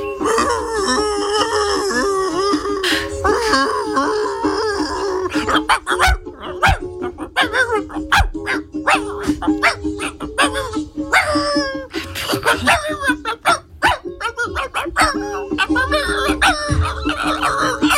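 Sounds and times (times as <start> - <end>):
dog howling in a tune-like line: 0.0 - 17.9
dog barking and yipping: 5.3 - 17.9.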